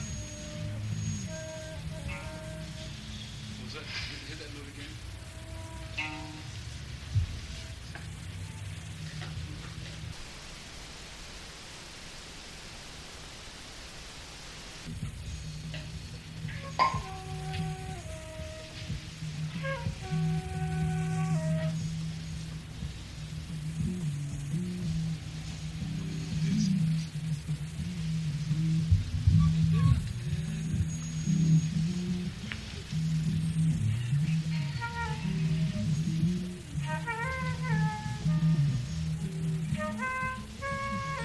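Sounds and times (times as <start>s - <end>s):
flute jam: 0.0s - 10.2s, 14.9s - 41.2s.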